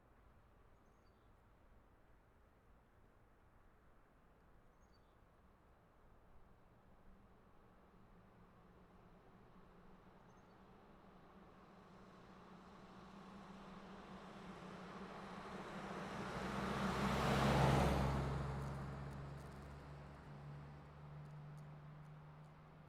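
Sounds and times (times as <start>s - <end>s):
SUV driving by: 16.1s - 19.6s.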